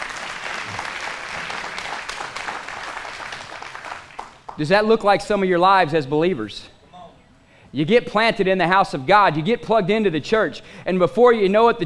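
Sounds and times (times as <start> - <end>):
audience applause: 0.0 - 4.6
speech: 4.6 - 6.7, 7.7 - 11.8.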